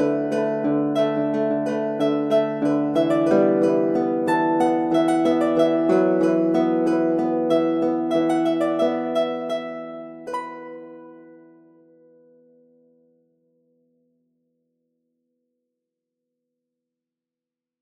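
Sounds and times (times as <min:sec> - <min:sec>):
triple harp: 0:00.0 - 0:12.5.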